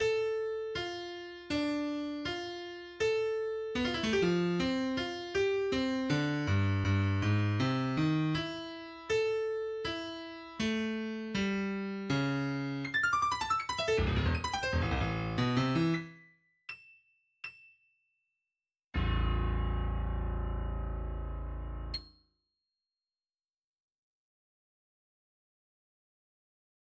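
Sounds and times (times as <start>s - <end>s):
piano: 0.0s - 16.8s, 19.0s - 22.1s.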